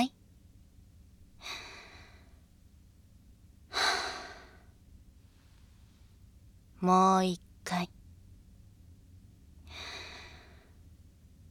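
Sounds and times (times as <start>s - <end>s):
person deep breathing in a paced breathing exercise: 3.7s - 4.7s, 9.7s - 10.8s
speech: 6.8s - 7.9s.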